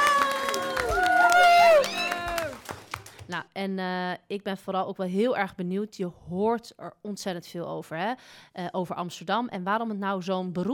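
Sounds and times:
students applauding and cheering: 0.0s - 3.4s
speech: 3.3s - 10.7s.

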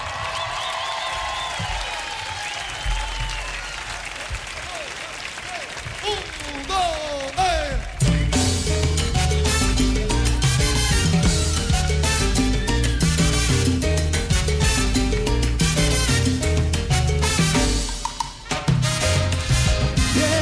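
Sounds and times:
cheering voices: 0.0s - 8.4s
crowd applauding: 0.0s - 14.1s
music playing: 7.4s - 20.4s.

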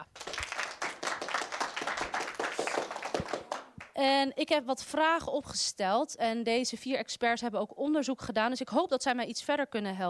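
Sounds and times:
audience applause: 0.0s - 3.8s
speech: 4.0s - 10.0s.

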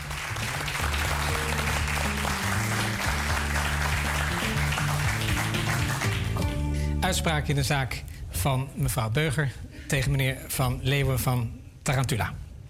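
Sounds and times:
crowd applauding: 0.0s - 6.8s
low musical tune: 0.0s - 7.6s
speech: 7.1s - 12.4s.

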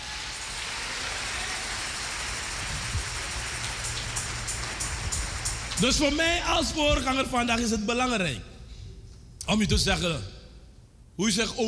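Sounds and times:
thunderous applause from audience: 0.0s - 6.8s
speech: 5.8s - 8.5s, 9.5s - 10.4s, 11.2s - 11.6s.

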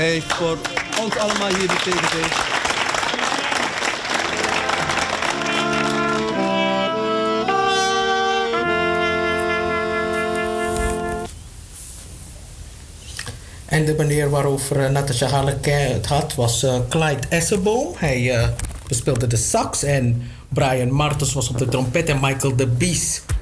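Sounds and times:
speech: 0.0s - 2.5s, 13.8s - 23.3s
thunderous applause: 0.0s - 11.3s.

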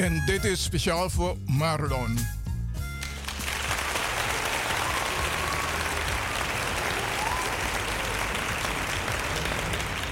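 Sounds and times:
speech: 0.2s - 2.4s
applause: 2.9s - 10.1s.

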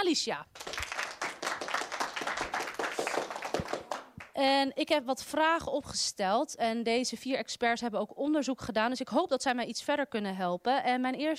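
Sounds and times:
speech: 0.0s - 0.7s, 4.4s - 11.3s
audience applause for the experts: 0.6s - 4.2s.

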